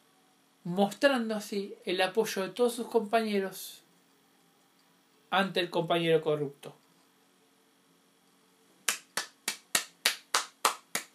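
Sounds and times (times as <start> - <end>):
speech: 0.6 - 3.8, 5.3 - 6.8
person clapping: 8.9 - 11.1.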